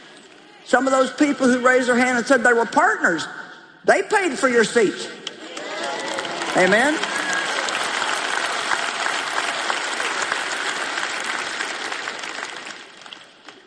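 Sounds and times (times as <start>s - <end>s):
speech: 0.7s - 5.2s, 6.6s - 7.1s
audience clapping and cheering: 5.2s - 13.6s.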